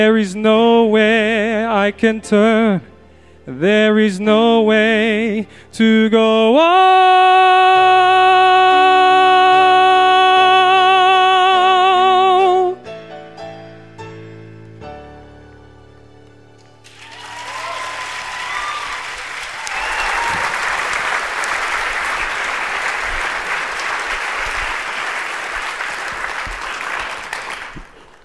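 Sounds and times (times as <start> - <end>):
speech: 0.0 - 2.9, 3.5 - 8.1
sung piece ending on held resonant notes: 0.0 - 2.9, 3.5 - 12.9
audience applause: 16.8 - 28.2.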